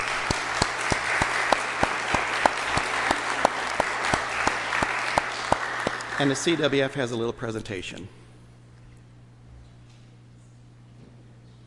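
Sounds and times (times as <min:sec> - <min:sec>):
audience applause for graduates: 0:00.0 - 0:07.0
speech: 0:06.2 - 0:08.2.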